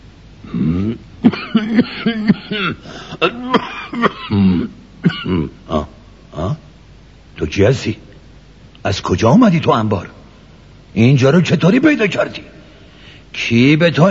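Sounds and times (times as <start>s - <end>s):
storyteller imitating a cough: 0.5s - 6.5s
speech: 2.6s - 3.6s, 7.5s - 8.1s, 8.8s - 10.2s, 10.9s - 12.6s, 13.4s - 14.0s.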